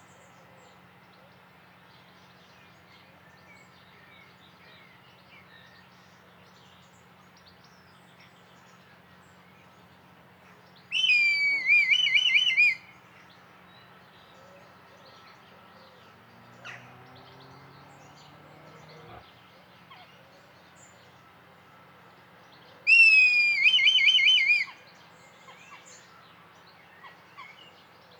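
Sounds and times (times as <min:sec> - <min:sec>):
red kite high whistled call: 0:10.9 - 0:13.0, 0:22.9 - 0:24.8.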